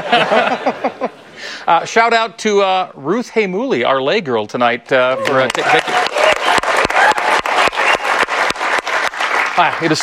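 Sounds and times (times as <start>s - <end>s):
laughter: 0.0s - 1.4s
speech: 0.1s - 5.9s, 9.6s - 10.0s
crowd applauding in standing ovation: 5.2s - 10.0s.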